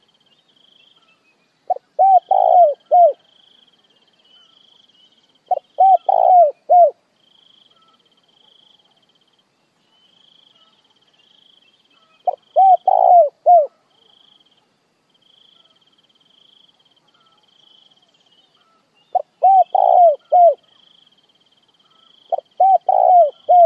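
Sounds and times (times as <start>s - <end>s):
spotted dove cooing: 1.7s - 3.2s, 5.5s - 7.0s, 12.2s - 13.8s, 19.1s - 20.8s, 21.9s - 23.6s.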